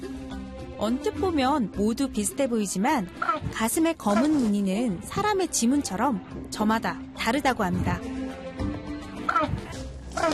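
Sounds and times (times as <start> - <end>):
speech: 0.8 - 8.1
African (jackass) penguin braying call: 3.1 - 4.3, 9.2 - 10.3.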